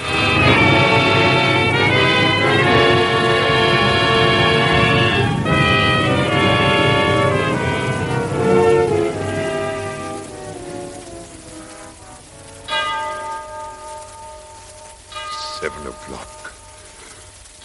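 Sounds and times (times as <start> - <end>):
clock bell striking seven: 0.0 - 5.0, 12.6 - 17.6
hiss: 0.0 - 17.6.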